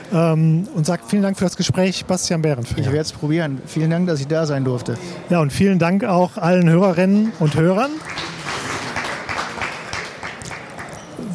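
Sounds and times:
speech: 0.1 - 8.3
audience applause in the Jahrhunderthalle: 7.2 - 11.0.

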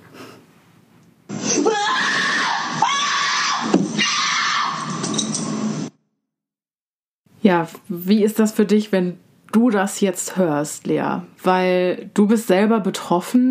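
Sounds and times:
person screaming: 1.4 - 4.8
speech: 7.5 - 13.4.

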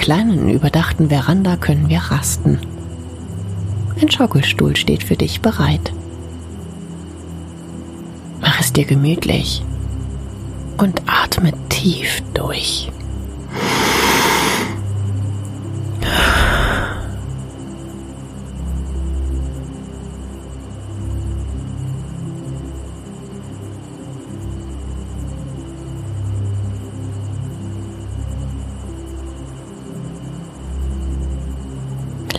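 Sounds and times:
crickets chirping: 0.0 - 32.3
low hum: 0.0 - 32.3
speech: 0.1 - 2.8, 4.0 - 6.0, 8.6 - 9.7, 10.8 - 13.0
breathy whooshes: 13.5 - 14.8, 16.0 - 17.3.

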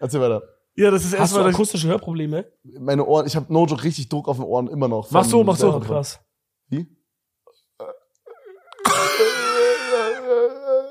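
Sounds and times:
speech: 0.0 - 7.0
person yawning: 7.8 - 10.8.

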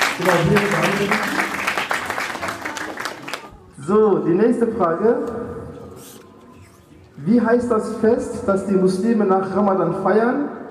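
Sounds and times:
applause: 0.0 - 3.6
speech: 0.2 - 1.5, 3.8 - 5.4, 7.2 - 10.5.

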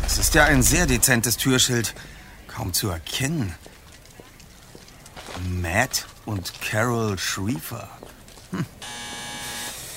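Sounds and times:
speech: 0.1 - 3.7, 5.4 - 8.0, 8.5 - 8.8
doorbell buzzer: 8.8 - 9.9.

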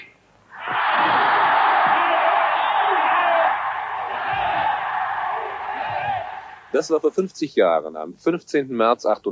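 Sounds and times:
large crowd cheering at a rally: 0.5 - 6.8
speech: 6.7 - 9.3.

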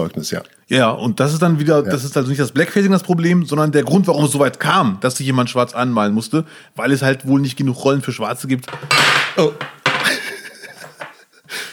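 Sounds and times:
speech: 0.0 - 9.8
drinking glass falling over: 8.7 - 11.2
laughter: 10.0 - 11.7.

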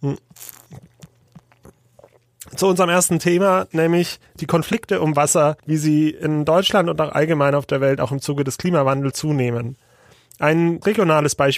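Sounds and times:
speech: 0.0 - 0.8, 2.6 - 11.5
person sipping a drink: 0.0 - 2.6.

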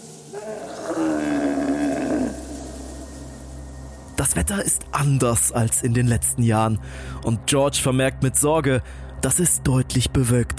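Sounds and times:
yak moaning call: 0.3 - 3.1
speech: 4.2 - 10.5.

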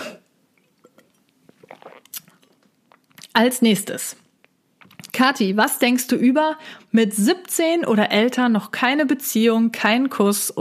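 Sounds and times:
sipping and swallowing from a drink: 0.5 - 3.4, 4.8 - 5.1
speech: 3.4 - 4.2, 5.2 - 10.6.

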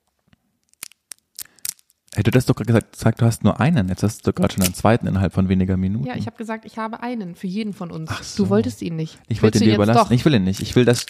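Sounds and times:
Babybel cheese wrapper being unwrapped: 0.6 - 3.0, 3.9 - 4.9, 9.7 - 11.0
speech: 2.2 - 11.0.

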